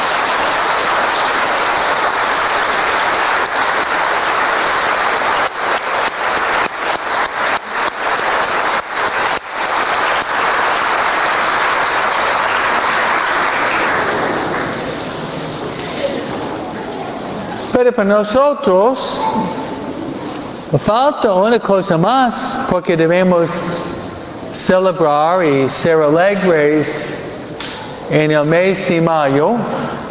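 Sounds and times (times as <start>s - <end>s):
audience applause: 0.0s - 17.7s
speech: 18.0s - 19.6s, 20.7s - 23.8s, 24.6s - 27.1s, 28.1s - 30.0s.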